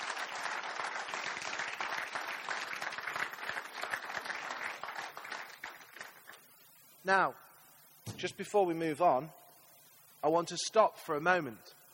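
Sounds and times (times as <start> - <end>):
audience round of applause: 0.0 - 6.4
speech: 7.0 - 7.4, 8.2 - 9.4, 10.2 - 11.7.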